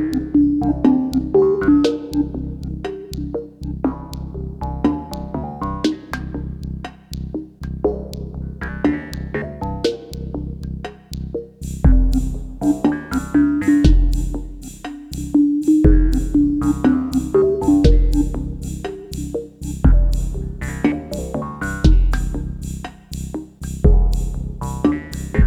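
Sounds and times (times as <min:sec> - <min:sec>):
slow chill drum machine synth music at 30 BPM: 0:00.0 - 0:25.4.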